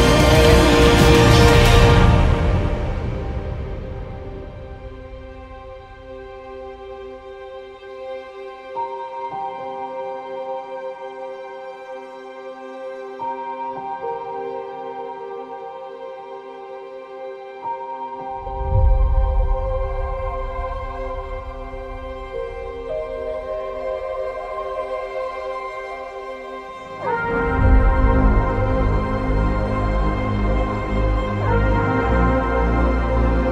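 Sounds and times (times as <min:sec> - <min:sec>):
epic orchestral medley: 0:00.0 - 0:08.7, 0:18.4 - 0:33.5.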